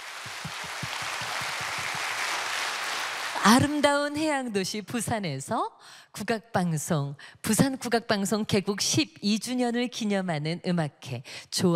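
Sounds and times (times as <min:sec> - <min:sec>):
audience applause: 0:00.0 - 0:03.7
speech: 0:00.2 - 0:00.9, 0:03.4 - 0:11.7.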